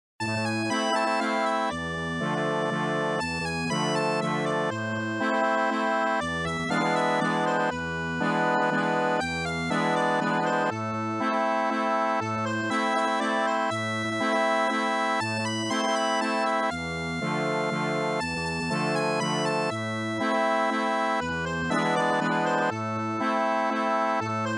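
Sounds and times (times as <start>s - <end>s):
accordion: 0.2s - 24.5s.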